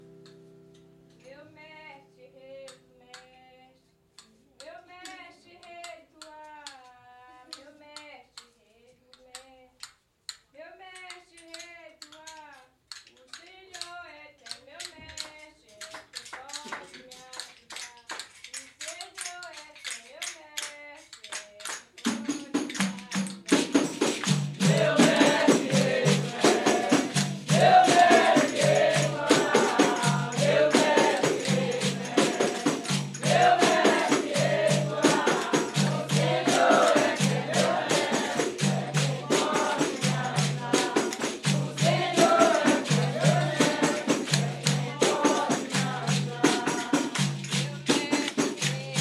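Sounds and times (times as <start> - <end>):
baiao music: 22.1 - 48.9.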